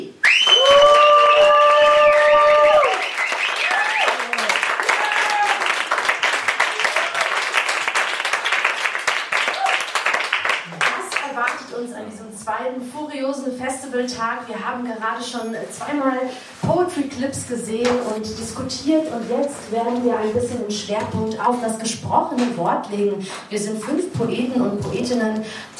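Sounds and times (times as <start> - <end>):
audience applause: 0.2 - 11.3
speech: 13.8 - 25.7.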